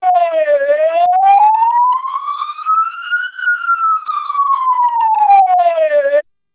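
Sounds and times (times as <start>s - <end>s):
siren: 0.0s - 6.2s.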